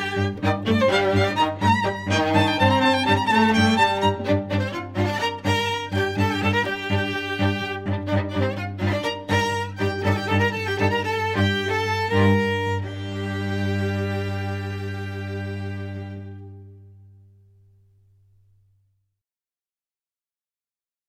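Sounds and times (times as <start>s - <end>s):
quartet playing a fugue: 0.0s - 16.7s.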